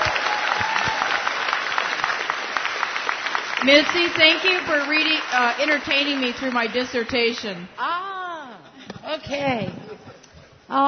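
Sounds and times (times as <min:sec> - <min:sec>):
audience applause: 0:00.0 - 0:07.4
speech: 0:03.6 - 0:08.2, 0:09.1 - 0:09.8.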